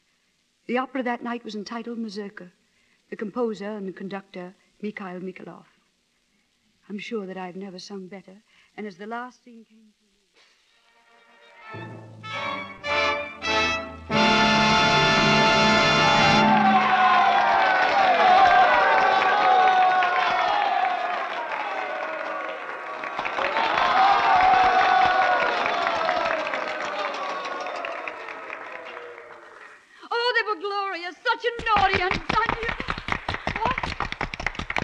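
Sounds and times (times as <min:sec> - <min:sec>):
speech: 0:00.7 - 0:05.7, 0:06.9 - 0:10.0
audience applause and cheering: 0:11.8 - 0:30.0, 0:31.7 - 0:34.8.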